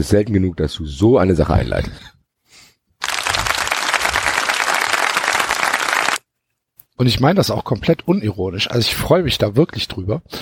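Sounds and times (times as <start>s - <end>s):
speech: 0.0s - 2.2s, 7.0s - 10.4s
played-in applause sound effect: 3.0s - 6.2s.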